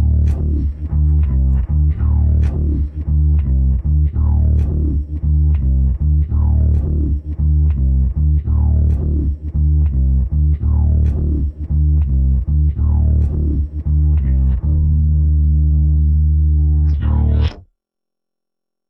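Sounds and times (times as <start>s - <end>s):
rock bass: 0.0s - 17.6s.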